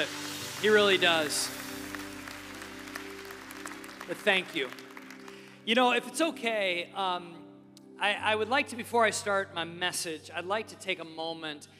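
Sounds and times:
speech: 0.0s - 1.6s, 4.1s - 4.8s, 5.6s - 7.4s, 8.0s - 11.7s
audience applause: 0.0s - 5.7s.

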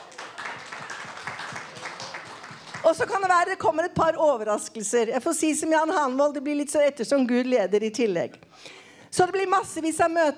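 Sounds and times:
audience applause: 0.0s - 3.1s
speech: 2.9s - 10.3s.

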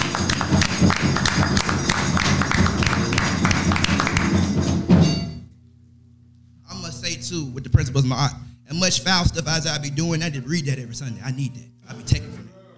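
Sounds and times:
audience hand clapping: 0.0s - 4.9s
speech: 7.3s - 12.3s.

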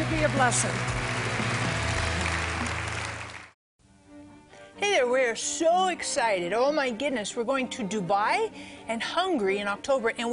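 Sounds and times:
audience clapping: 0.0s - 3.6s
speech: 0.2s - 1.0s, 5.0s - 10.3s.

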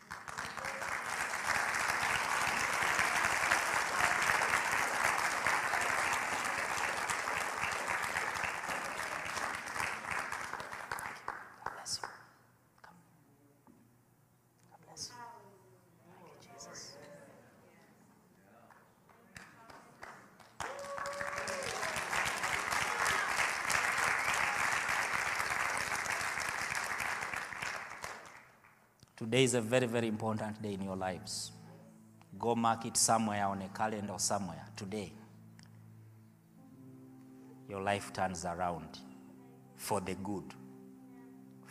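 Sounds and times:
audience clapping: 0.0s - 12.4s, 18.7s - 28.9s
speech: 29.2s - 31.6s, 32.4s - 35.2s, 37.9s - 39.1s, 39.8s - 40.6s.

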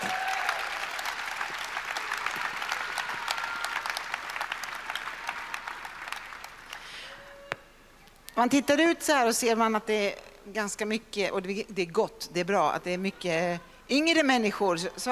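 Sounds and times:
audience applause: 0.0s - 7.1s
speech: 8.4s - 15.1s.

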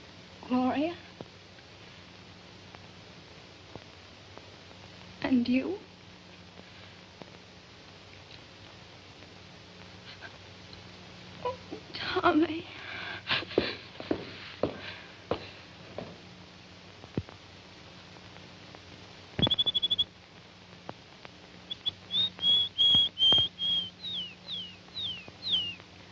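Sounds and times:
low steady hum: 0.0s - 26.1s
speech: 0.5s - 1.1s, 5.3s - 5.9s
small bird chirping and singing: 19.4s - 20.0s, 21.7s - 25.8s.

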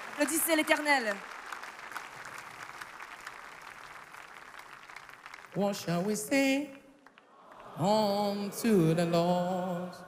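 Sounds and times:
audience clapping for the Lord: 0.0s - 9.6s
speech: 0.2s - 1.4s, 5.6s - 6.8s, 7.8s - 10.0s.

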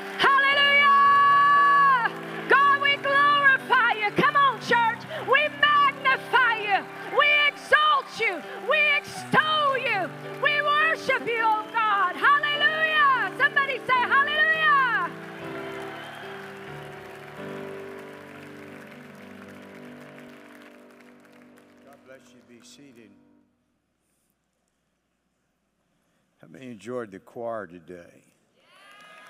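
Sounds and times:
audience cheering and whooping: 0.0s - 20.8s, 28.6s - 29.2s
scattered claps: 4.2s - 22.7s
speech: 26.8s - 28.3s.

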